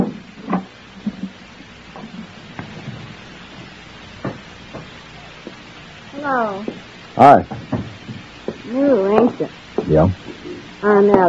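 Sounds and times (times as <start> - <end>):
steady hiss: 0.0 - 11.2
speech: 6.2 - 7.8, 8.7 - 11.2
sharp hollow knocks at a door: 7.5 - 8.6.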